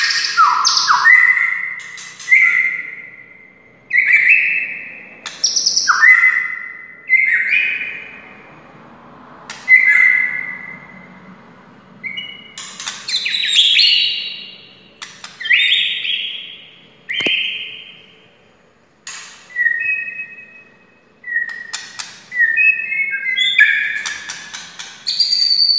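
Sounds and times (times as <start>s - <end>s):
White-rumped shama song: 0.0s - 8.0s, 12.0s - 14.7s, 15.4s - 18.1s, 19.5s - 24.4s, 25.0s - 25.7s.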